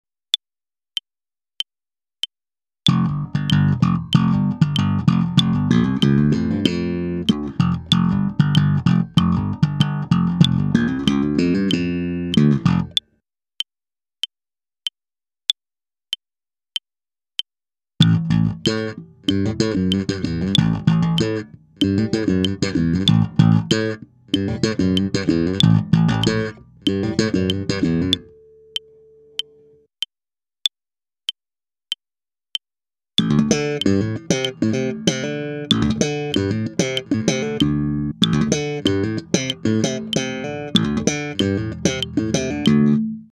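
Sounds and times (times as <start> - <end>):
slap electric bass: 2.9 - 13.0, 18.0 - 28.3, 33.2 - 43.3.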